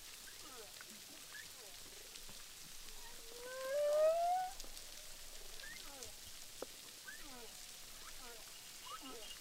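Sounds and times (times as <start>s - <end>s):
humpback whale song recorded underwater with a hydrophone at Boucan Canot, Réunion Island: 3.1s - 4.6s.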